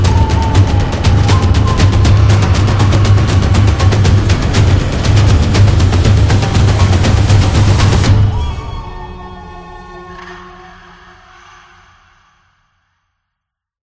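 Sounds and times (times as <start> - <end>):
African drums: 0.0 - 8.7.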